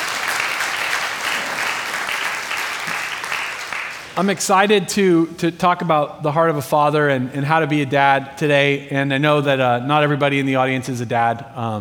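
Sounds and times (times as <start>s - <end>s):
audience applauding at a talk about fatherhood: 0.0s - 4.2s
speech: 4.2s - 11.8s.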